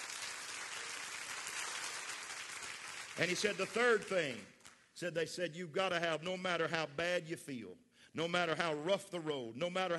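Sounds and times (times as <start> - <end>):
audience clapping hands: 0.0 - 4.9
speech: 3.2 - 9.9.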